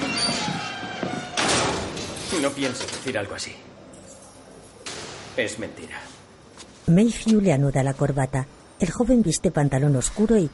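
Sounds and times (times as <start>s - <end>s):
door closed by a guard: 0.0s - 3.1s
speech: 2.4s - 3.7s, 5.4s - 6.2s, 6.9s - 10.5s.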